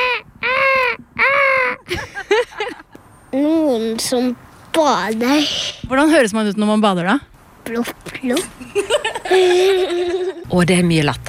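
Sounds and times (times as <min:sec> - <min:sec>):
seagulls crying: 0:00.0 - 0:02.8
laughter: 0:01.8 - 0:03.0, 0:08.6 - 0:10.4
speech: 0:03.4 - 0:11.2.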